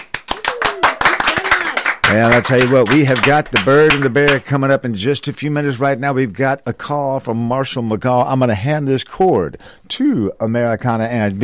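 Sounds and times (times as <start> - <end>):
round of applause: 0.0 - 4.4
speech: 2.1 - 11.4.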